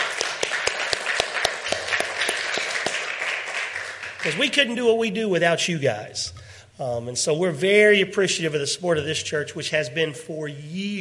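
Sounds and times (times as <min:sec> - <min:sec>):
audience applause: 0:00.0 - 0:04.6
speech: 0:04.2 - 0:10.9.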